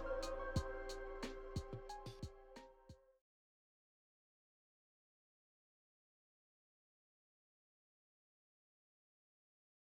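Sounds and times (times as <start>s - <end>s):
hip hop music: 0.0s - 2.9s.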